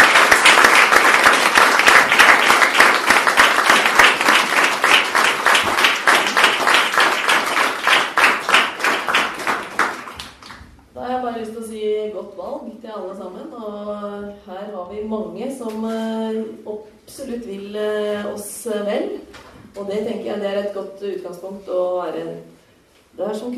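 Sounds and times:
audience applause: 0.0s - 10.6s
speech: 15.3s - 22.5s, 23.2s - 23.5s.

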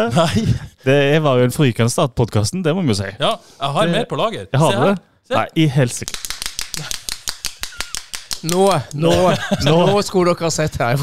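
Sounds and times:
speech: 0.0s - 7.0s, 8.4s - 11.0s
handheld clapper noisemaker: 6.1s - 9.2s
laughter: 8.9s - 10.4s.

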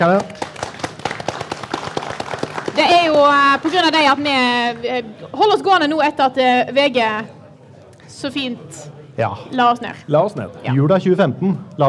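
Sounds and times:
speech: 0.0s - 0.4s, 2.8s - 7.4s, 8.1s - 11.8s
applause: 0.0s - 4.9s.

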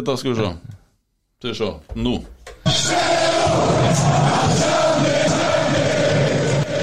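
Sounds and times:
speech: 0.0s - 0.7s, 1.4s - 6.2s
crowd cheering in a radio jingle on a Norwegian talk show: 2.6s - 6.8s.

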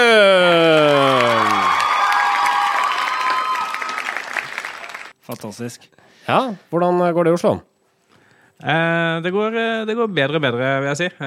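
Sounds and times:
audience applause and cheering: 0.0s - 5.1s
speech: 5.4s - 7.7s, 8.6s - 11.2s.

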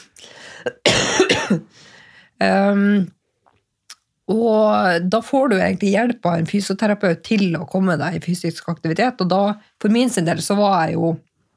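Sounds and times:
person with a persistent cough coughing harshly: 0.5s - 1.8s
speech: 2.4s - 3.2s, 4.3s - 11.3s.

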